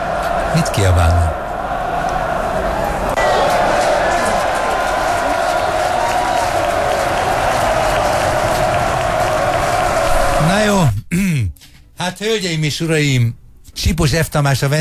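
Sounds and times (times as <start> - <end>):
applause recorded at a football match: 0.0 - 10.6
speech: 0.6 - 1.4, 12.2 - 14.8.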